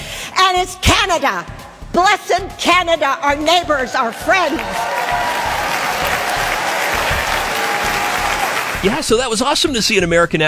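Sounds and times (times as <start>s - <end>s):
speech: 0.6s - 5.2s, 8.8s - 10.4s
audience applause: 4.1s - 9.3s.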